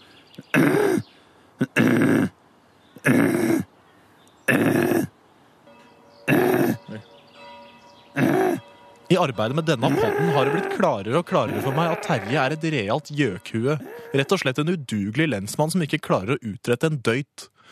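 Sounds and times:
speech: 0:00.4 - 0:00.8, 0:09.2 - 0:17.7
imitated choking, hacking throat noises: 0:00.4 - 0:02.4, 0:03.0 - 0:03.7, 0:04.5 - 0:05.1, 0:06.3 - 0:07.0, 0:08.2 - 0:08.6, 0:09.8 - 0:14.6.

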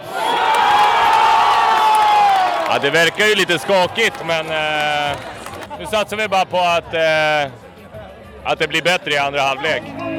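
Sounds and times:
stadium crowd of football fans cheering: 0:00.0 - 0:07.4
speech: 0:02.7 - 0:07.7, 0:08.4 - 0:10.0.

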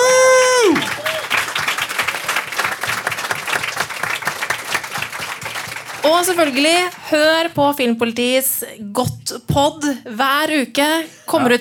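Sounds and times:
audience applause: 0:00.0 - 0:07.0
speech: 0:06.1 - 0:11.5.

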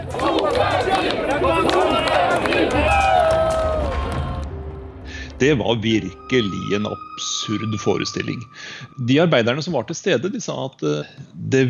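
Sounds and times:
large crowd chanting rhythmically: 0:00.0 - 0:04.5
speech: 0:05.4 - 0:11.6.

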